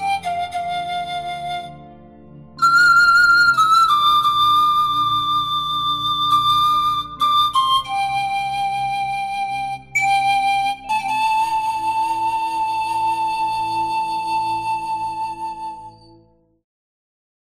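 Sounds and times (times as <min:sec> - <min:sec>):
Romanian nai pan flute playing: 0:00.0 - 0:16.3.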